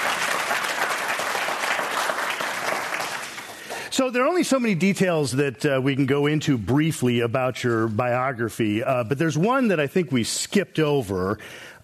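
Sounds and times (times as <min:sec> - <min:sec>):
audience applause: 0:00.0 - 0:03.9
speech: 0:04.0 - 0:11.8.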